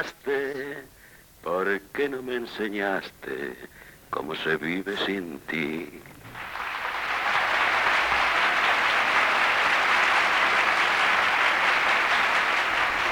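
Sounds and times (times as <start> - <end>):
speech: 0.0 - 6.1
audience ovation applause: 6.3 - 13.1.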